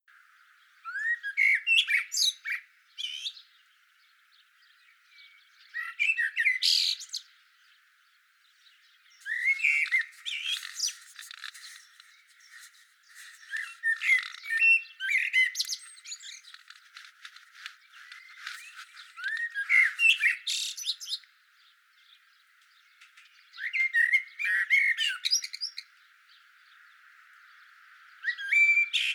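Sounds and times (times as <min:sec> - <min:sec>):
Eurasian blackbird singing: 0:00.4 - 0:29.1
high twittering: 0:09.2 - 0:20.8.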